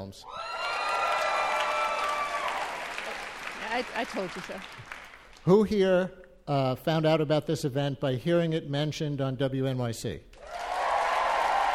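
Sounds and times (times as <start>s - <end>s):
speech: 0.1s - 0.5s, 3.7s - 10.3s
audience cheering and applause: 0.3s - 5.5s, 10.4s - 11.7s.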